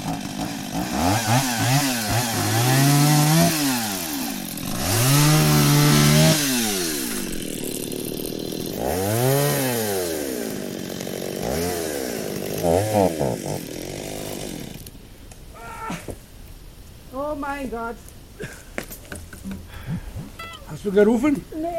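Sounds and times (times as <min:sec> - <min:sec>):
chainsaw cutting wood: 0:00.0 - 0:15.0
speech: 0:20.9 - 0:21.6.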